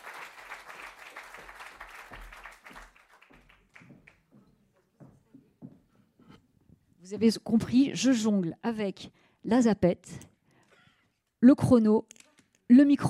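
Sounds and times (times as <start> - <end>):
audience applause: 0.0 - 4.3
speech: 7.1 - 10.3, 11.4 - 12.1, 12.7 - 13.0.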